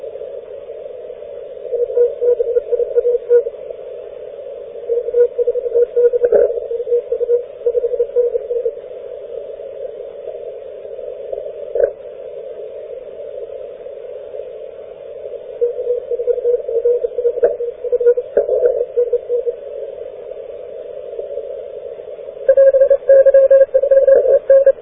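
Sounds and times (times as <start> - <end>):
morse code tones on 40m amateur radio band: 1.8 - 3.5, 4.9 - 8.7, 15.6 - 19.6, 22.5 - 24.8.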